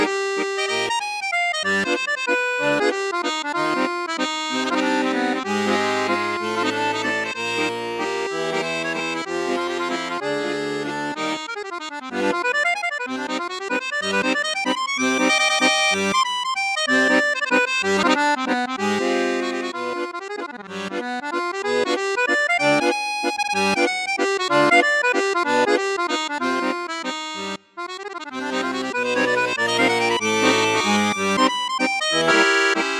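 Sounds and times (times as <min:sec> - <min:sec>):
Coope Armoniche Diamante 805 accordion on flute register: 0:00.0 - 0:32.9.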